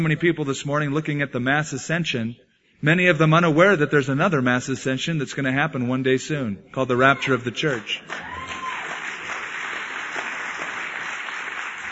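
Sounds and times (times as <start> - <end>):
speech: 0.0 - 8.4
audience applause: 7.7 - 11.9.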